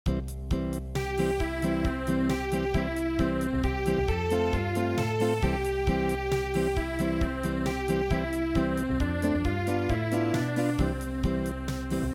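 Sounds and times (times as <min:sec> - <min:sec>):
unplugged midi music: 0:00.1 - 0:12.1.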